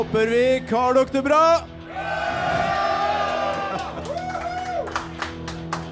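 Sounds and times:
speech: 0.2 - 1.7
crowd cheering: 1.9 - 5.8.

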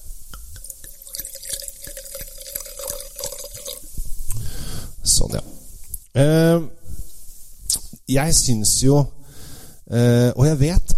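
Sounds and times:
wine pouring into a glass: 0.6 - 4.0
speech: 5.1 - 6.8, 8.1 - 9.2, 9.9 - 10.9.

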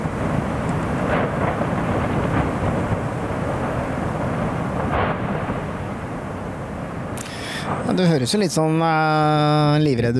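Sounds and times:
lava bursting pops: 0.0 - 8.0
lava bubbling in a volcanic eruption: 0.0 - 8.6
speech: 8.0 - 10.1.

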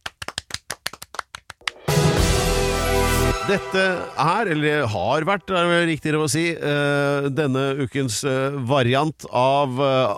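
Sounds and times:
audience clapping: 0.0 - 2.4
speech: 3.5 - 10.1.

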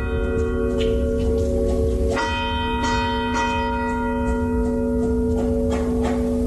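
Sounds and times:
church bells chiming: 0.0 - 6.4.

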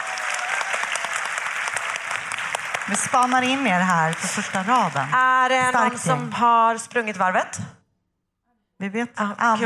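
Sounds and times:
audience applause: 0.0 - 5.4
speech: 2.9 - 7.8, 8.8 - 9.6.

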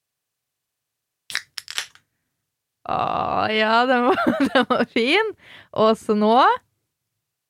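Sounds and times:
soda cans being cracked open with fizzing hiss: 1.3 - 2.0
speech: 2.9 - 6.6.

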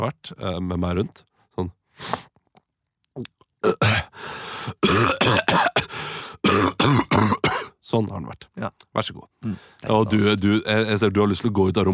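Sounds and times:
speech: 0.0 - 2.3, 3.2 - 11.9
person coughing and clearing throat acting out a sick week: 3.6 - 7.8.

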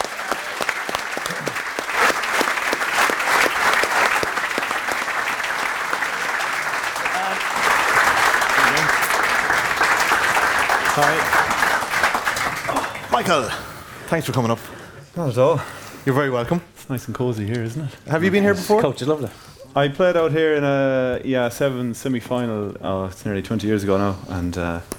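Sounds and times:
audience applause at a live show in Dublin welcoming a guest: 0.0 - 13.8
speech: 13.2 - 24.9.

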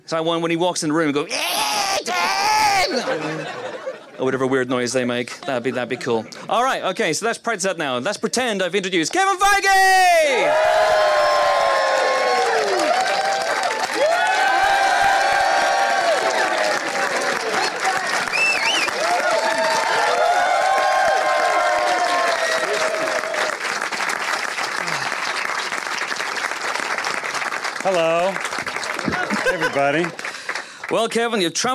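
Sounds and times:
speech: 0.1 - 11.4, 29.8 - 30.3, 30.9 - 31.7
live audience cheering and applause: 1.3 - 4.0, 9.8 - 31.1
laughter: 1.3 - 6.7, 29.0 - 30.3.

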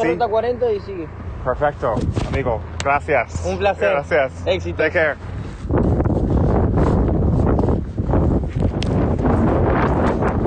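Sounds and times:
speech: 0.0 - 5.9
strong blast of Patagonian wind battering the microphone: 1.7 - 3.3, 4.9 - 10.4.

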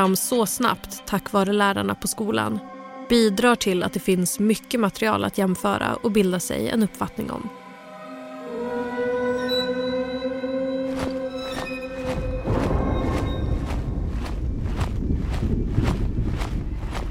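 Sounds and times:
speech: 0.0 - 7.6
sustained musical tones: 0.0 - 14.0
footsteps of several people marching quickly across a schoolyard: 10.9 - 17.1.

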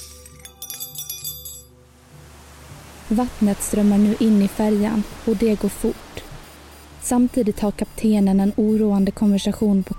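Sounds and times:
cutlery, ashtrays, glass and porcelain shattering on the floor: 0.0 - 1.7
speech: 3.1 - 6.0, 7.1 - 9.9.

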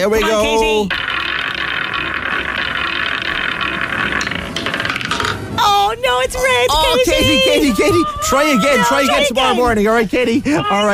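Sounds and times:
speech: 0.0 - 1.1, 5.6 - 10.9
prize wheel spinning and clicking: 0.0 - 5.6.

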